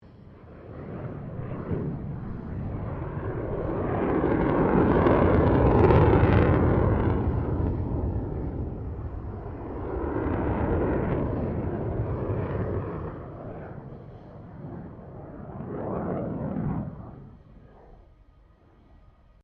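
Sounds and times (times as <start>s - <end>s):
F16 Falcon aircraft maneuvering: 0.1s - 18.2s.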